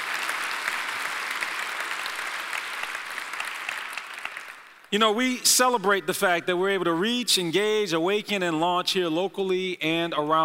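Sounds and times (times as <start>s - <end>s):
audience applause: 0.0s - 4.9s
speech: 4.9s - 10.4s.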